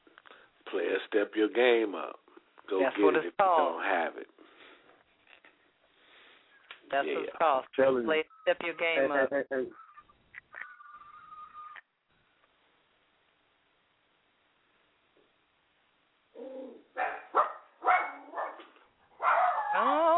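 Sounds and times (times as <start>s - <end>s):
speech: 0.7s - 4.3s, 6.9s - 9.8s
puppy barking: 16.9s - 19.9s.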